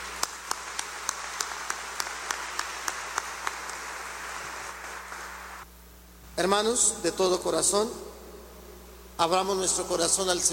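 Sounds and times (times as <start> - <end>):
audience applauding: 0.0 - 5.6
speech: 6.4 - 8.1, 9.2 - 10.5.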